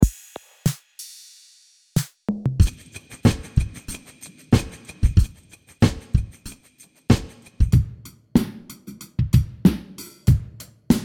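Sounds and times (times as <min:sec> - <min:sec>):
drums: 0:00.0 - 0:11.0.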